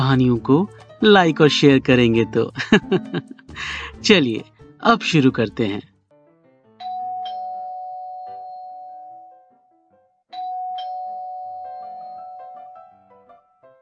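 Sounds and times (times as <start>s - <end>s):
speech: 0.1s - 5.9s
laughter: 2.6s - 3.5s
doorbell ringing: 6.8s - 9.5s, 10.3s - 12.9s.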